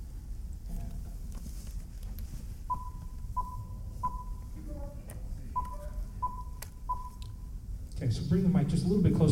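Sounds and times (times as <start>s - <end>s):
cue beeps signaling when to speak: 2.7s - 4.5s, 5.6s - 7.4s
speech: 8.1s - 9.3s.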